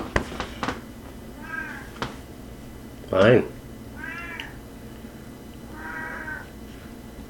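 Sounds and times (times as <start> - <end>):
domestic cat meowing: 1.4 - 2.0, 4.0 - 4.6, 5.7 - 6.5
speech: 3.1 - 3.6.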